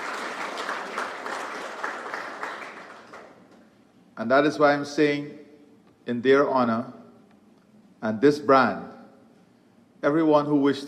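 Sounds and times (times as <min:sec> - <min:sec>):
audience applause: 0:00.0 - 0:03.4
speech: 0:04.2 - 0:05.4, 0:06.1 - 0:07.0, 0:08.0 - 0:08.9, 0:10.0 - 0:10.8.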